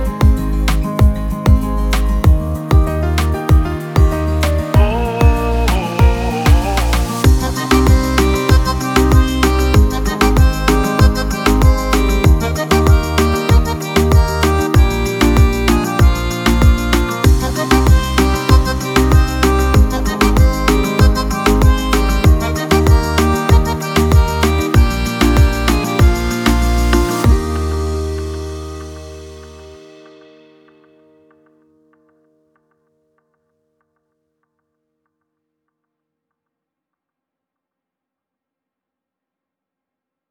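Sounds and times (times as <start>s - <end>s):
Spanish Latin reggaeton carnival music: 0.0s - 30.4s.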